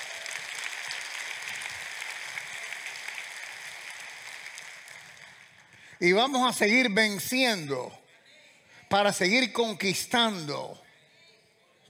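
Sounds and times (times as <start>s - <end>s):
audience applause: 0.0s - 6.4s
speech: 6.0s - 8.0s, 8.9s - 10.8s.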